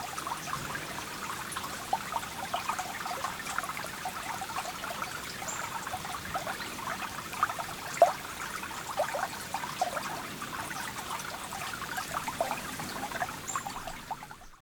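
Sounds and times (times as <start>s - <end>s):
small stream flowing: 0.0s - 14.6s
birds: 10.7s - 14.6s.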